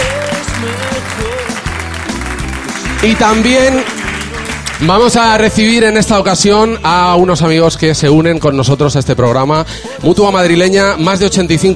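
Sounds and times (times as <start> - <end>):
audience applause for the Jarro Café de Madrid team: 0.0 - 5.2
speech: 3.0 - 4.0, 4.8 - 11.7.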